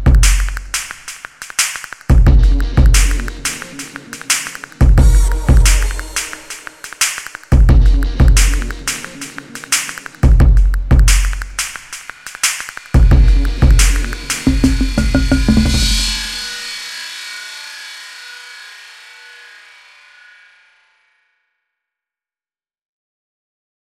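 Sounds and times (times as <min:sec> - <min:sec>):
music beat: 0:00.0 - 0:17.0.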